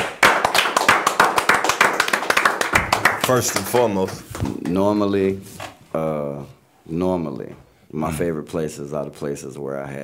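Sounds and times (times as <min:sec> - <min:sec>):
people clapping: 0:00.0 - 0:05.1
speech: 0:03.3 - 0:10.0.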